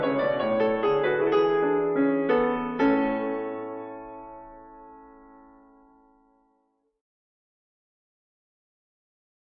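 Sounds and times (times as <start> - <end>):
fugue in A major on piano: 0.0 - 6.6.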